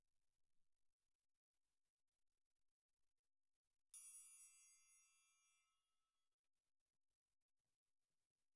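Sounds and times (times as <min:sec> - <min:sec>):
triangle: 0:04.0 - 0:06.1.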